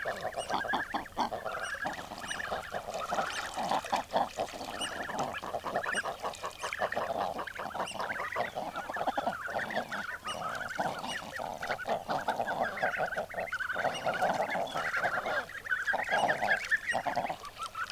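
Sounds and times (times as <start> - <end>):
common eider flock calling: 0.0 - 17.9.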